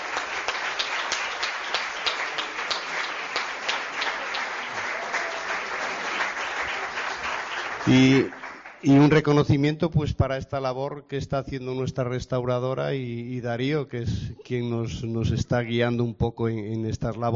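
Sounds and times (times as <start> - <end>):
audience applause: 0.0 - 9.0
speech: 7.9 - 17.3.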